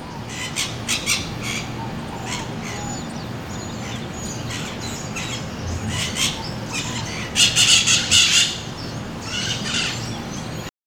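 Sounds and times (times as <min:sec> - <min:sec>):
steady background noise: 0:00.0 - 0:10.7
bird squawking: 0:04.9 - 0:08.3.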